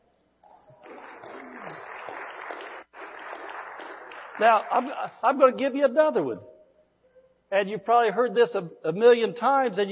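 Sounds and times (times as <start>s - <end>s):
audience clapping: 0.6s - 5.4s
speech: 4.4s - 6.5s, 7.5s - 9.9s.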